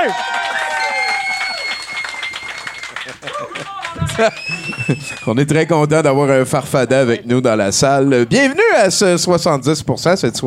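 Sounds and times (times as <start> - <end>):
audience applause at an evening show: 0.0 - 5.6
laughter: 2.8 - 5.3
speech: 4.2 - 10.4
man talking loudly over the crowd: 5.3 - 10.4.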